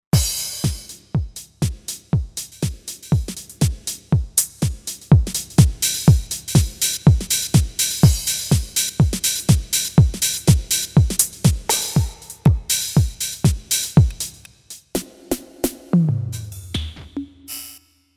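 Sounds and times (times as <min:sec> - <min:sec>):
house kit synth drums: 0:00.2 - 0:14.5.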